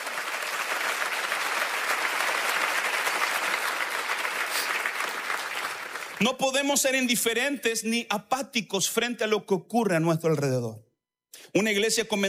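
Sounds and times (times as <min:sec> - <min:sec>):
audience applauding loudly: 0:00.0 - 0:06.4
speech: 0:06.2 - 0:10.8, 0:11.6 - 0:12.2.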